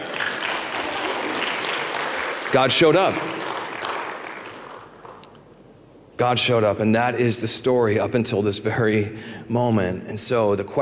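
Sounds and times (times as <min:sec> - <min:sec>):
audience applauding: 0:00.0 - 0:05.2
speech: 0:02.5 - 0:03.5, 0:06.2 - 0:10.7.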